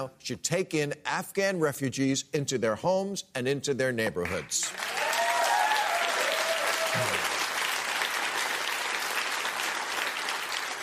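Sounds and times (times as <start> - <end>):
speech: 0.0 - 5.0, 6.9 - 7.3
audience applause: 4.3 - 10.8.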